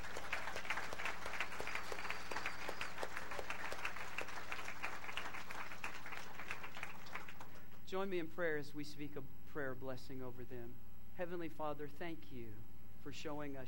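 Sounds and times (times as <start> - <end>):
audience clapping: 0.0 - 7.7
speech: 7.9 - 13.6.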